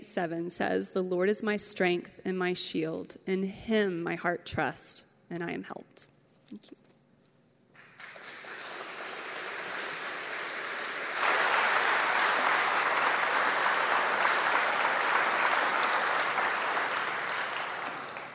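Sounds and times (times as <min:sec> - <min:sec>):
speech: 0:00.2 - 0:06.8
audience clapping: 0:07.7 - 0:18.3.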